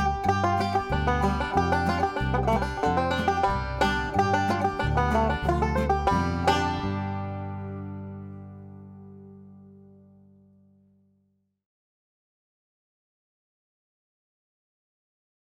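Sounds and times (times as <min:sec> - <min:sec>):
5-string banjo played natural style: 0:00.0 - 0:10.6.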